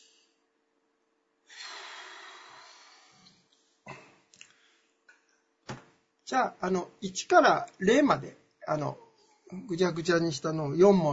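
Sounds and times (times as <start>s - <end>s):
deep breath: 1.5s - 5.0s
speech: 6.3s - 11.1s.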